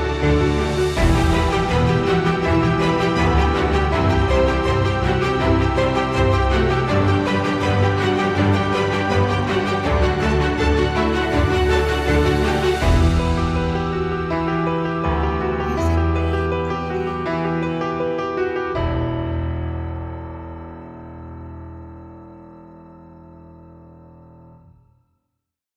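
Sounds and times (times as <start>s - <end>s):
epic inspiring music: 0.0s - 19.8s.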